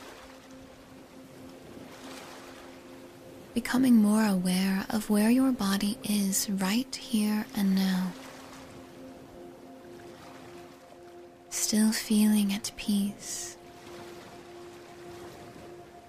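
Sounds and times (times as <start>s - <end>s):
ocean waves: 0.0s - 16.0s
speech: 3.6s - 8.2s, 11.7s - 13.6s.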